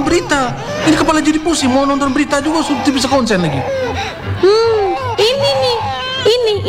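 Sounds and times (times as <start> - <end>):
baby crying at home: 0.0 - 6.6
laughter: 0.0 - 6.6
speech: 0.2 - 5.6, 6.2 - 6.6.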